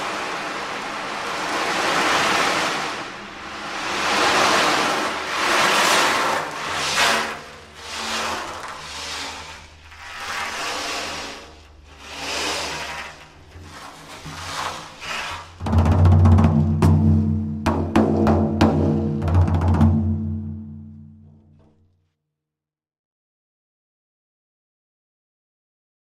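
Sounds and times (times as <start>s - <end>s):
45 cm ocean drum for energy healing: 0.0s - 8.4s, 13.5s - 21.7s.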